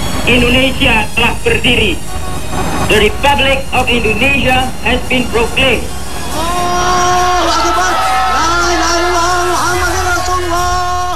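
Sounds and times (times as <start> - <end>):
speech: 0.3 - 7.7
crowd outside shouting merdeka: 4.5 - 11.1.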